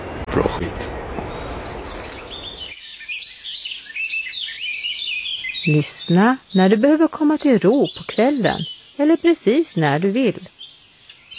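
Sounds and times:
waves: 0.0 - 2.6
speech: 0.4 - 1.1, 5.7 - 10.6
seagulls calling: 0.6 - 10.5.

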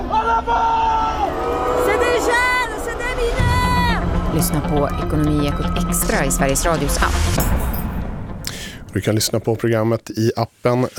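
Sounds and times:
street protest crowd chanting, shouting and whooping: 0.0 - 6.9
speech: 4.4 - 7.8, 9.0 - 10.9.

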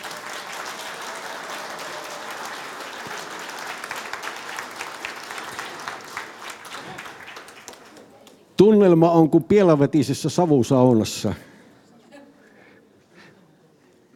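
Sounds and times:
audience applause: 0.0 - 8.4
speech: 8.6 - 11.5.

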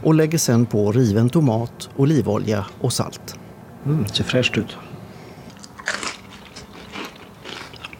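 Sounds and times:
speech: 0.0 - 4.9
biting into crunchy grilled toasted bread: 5.5 - 7.9.

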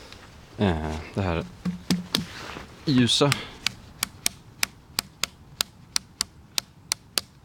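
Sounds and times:
speech: 0.6 - 1.8, 2.9 - 3.5
stone striking a rotten log in hi-hat-like clicks: 1.4 - 2.3, 3.3 - 7.3.

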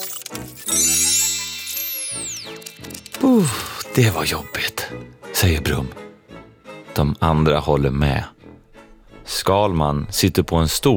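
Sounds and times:
robot whirring while bending down and up: 0.0 - 4.0
speech: 3.4 - 4.8, 5.4 - 6.0, 7.0 - 8.4, 9.3 - 10.9.

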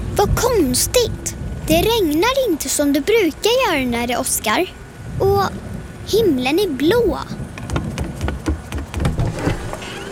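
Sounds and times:
speech: 0.2 - 7.4
rumbling flying vacuum cleaner: 7.6 - 10.1.

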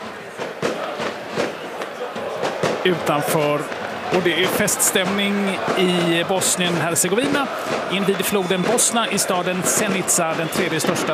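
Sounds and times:
crowd murmuring: 0.0 - 11.1
fireworks bangs outside the arena: 0.0 - 11.1
speech: 2.8 - 11.1.

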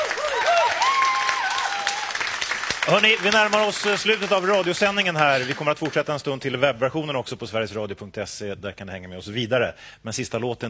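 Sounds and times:
live music audience in Stockholm applauding a singer and her band: 0.0 - 6.3
speech: 2.9 - 10.6.

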